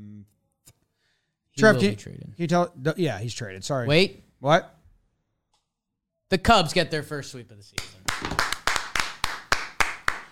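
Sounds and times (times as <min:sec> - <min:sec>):
speech: 0:01.6 - 0:04.8, 0:06.3 - 0:08.3
lone pair of hands clapping: 0:07.8 - 0:10.3.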